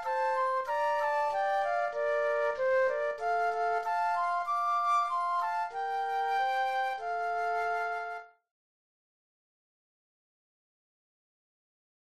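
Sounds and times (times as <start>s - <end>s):
flute duet: 0.0s - 8.4s.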